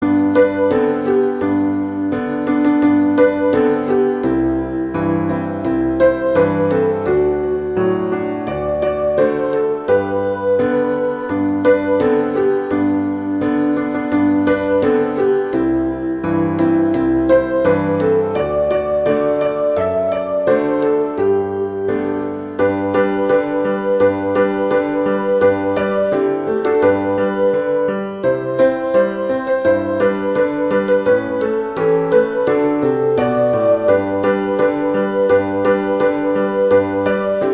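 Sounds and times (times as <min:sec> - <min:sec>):
Christmas song: 0:00.0 - 0:37.5.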